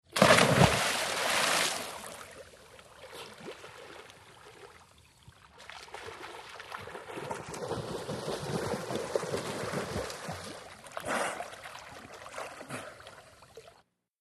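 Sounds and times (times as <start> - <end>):
swimming in water: 0.0 - 13.9
water splash: 0.1 - 2.4, 5.6 - 12.8.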